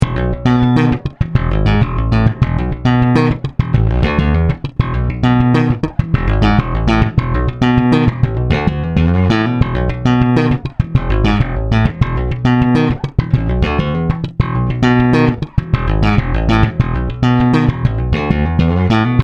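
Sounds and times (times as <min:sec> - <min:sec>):
slap bass solo: 0:00.0 - 0:19.2.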